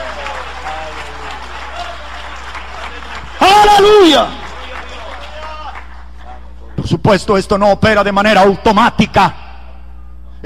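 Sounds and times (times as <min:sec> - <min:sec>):
audience applause: 0:00.0 - 0:06.4
speech: 0:07.1 - 0:09.4.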